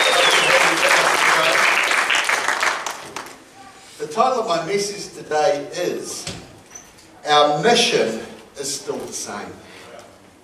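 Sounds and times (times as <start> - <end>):
audience cheering: 0.0 - 2.7
speech: 4.2 - 6.4, 7.2 - 9.7.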